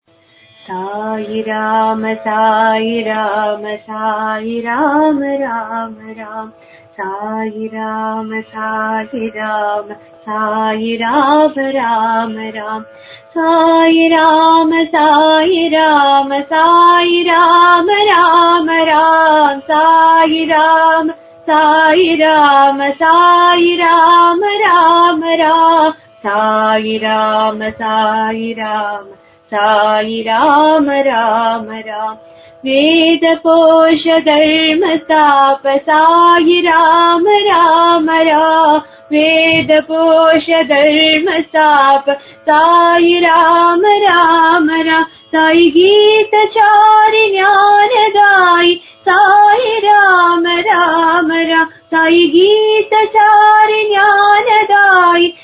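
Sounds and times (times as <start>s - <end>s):
bhajan devotional song: 0.1s - 55.4s.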